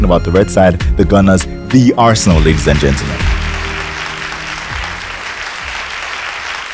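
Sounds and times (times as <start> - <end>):
speech: 0.1 - 3.4
applause ovation: 2.4 - 6.7.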